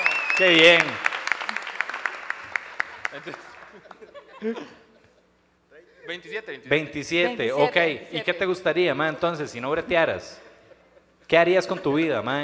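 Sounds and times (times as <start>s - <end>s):
applause: 0.0s - 4.0s
speech: 0.4s - 1.1s, 3.2s - 4.8s, 6.1s - 10.5s, 11.3s - 12.4s
laughter: 3.1s - 6.2s.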